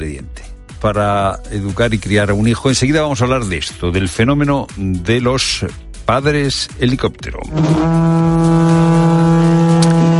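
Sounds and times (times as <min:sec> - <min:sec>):
speech: 0:00.0 - 0:09.1
trumpet call to meditation: 0:07.5 - 0:10.1.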